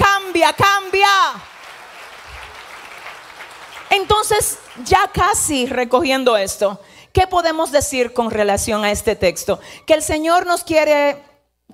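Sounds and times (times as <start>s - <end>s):
speech: 0.4s - 1.4s, 3.9s - 11.3s
audience applause: 1.4s - 5.0s.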